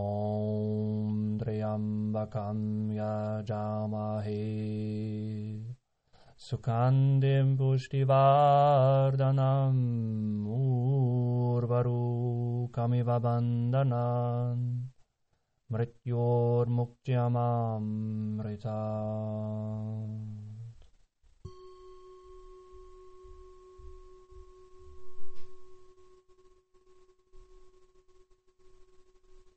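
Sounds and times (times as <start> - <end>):
mantra chanting: 0.0 - 5.8, 6.4 - 14.9, 15.7 - 20.7.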